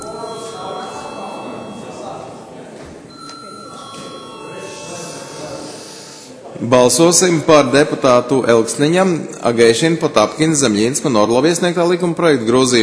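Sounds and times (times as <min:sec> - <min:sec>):
parliament chamber electric bell ringing: 0:00.0 - 0:02.5, 0:03.1 - 0:06.4
murmur of voices: 0:00.0 - 0:12.8
speech: 0:06.6 - 0:12.8.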